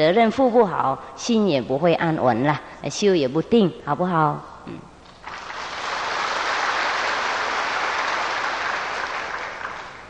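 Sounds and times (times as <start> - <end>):
speech: 0.0 - 4.9
audience applause: 5.2 - 10.0.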